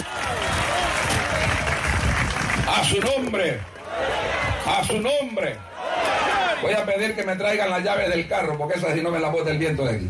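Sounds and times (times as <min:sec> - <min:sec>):
crowd, audience applauding: 0:00.0 - 0:04.4
speech: 0:02.8 - 0:05.7, 0:06.6 - 0:10.0.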